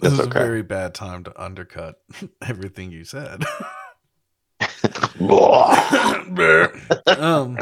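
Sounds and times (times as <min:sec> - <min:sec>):
speech: 0:00.0 - 0:03.8, 0:04.6 - 0:07.6
throaty voiced bursts: 0:05.0 - 0:07.6
burp: 0:05.1 - 0:06.9.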